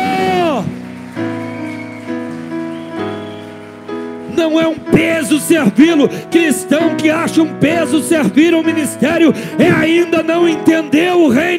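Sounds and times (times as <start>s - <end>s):
audience applauding: 0.0s - 6.0s
speech: 4.4s - 11.5s.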